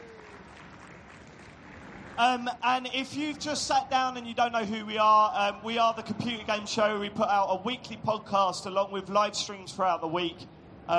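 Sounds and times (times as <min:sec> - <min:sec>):
audience applause: 0:00.0 - 0:02.6
speech: 0:02.2 - 0:10.9.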